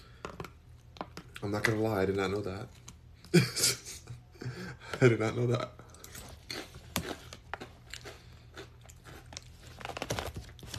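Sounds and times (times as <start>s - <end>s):
speech: 1.4s - 3.8s, 5.0s - 5.8s
crunchy chewing of pita chips with hummus: 5.9s - 10.0s.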